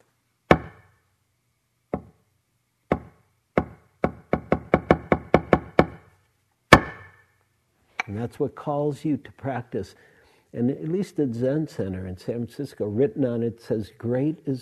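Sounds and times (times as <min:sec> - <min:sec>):
thick wooden han block struck with a mallet: 0:00.5 - 0:00.9, 0:01.9 - 0:02.2, 0:02.9 - 0:06.1, 0:06.7 - 0:07.2
speech: 0:08.1 - 0:14.5.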